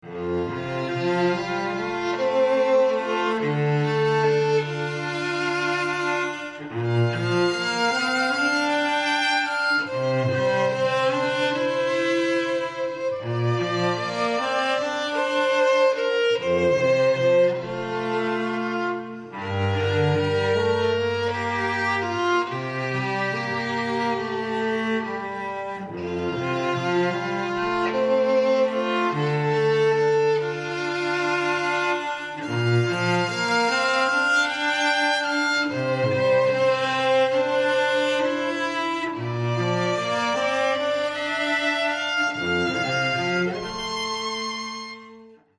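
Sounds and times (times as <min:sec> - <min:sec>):
strings: 0:00.0 - 0:45.5.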